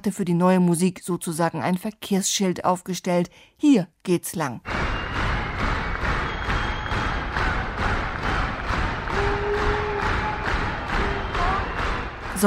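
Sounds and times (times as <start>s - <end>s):
speech: 0.0s - 4.9s
whistles: 4.7s - 7.4s, 9.1s - 12.4s
audience clapping rhythmically: 4.7s - 12.4s.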